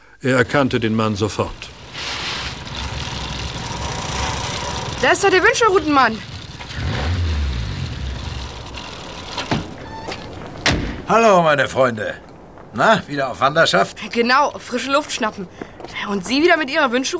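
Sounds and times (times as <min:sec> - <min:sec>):
speech: 0:00.2 - 0:01.8, 0:05.0 - 0:06.3, 0:11.1 - 0:17.1
car approaching and driving past: 0:00.8 - 0:11.1.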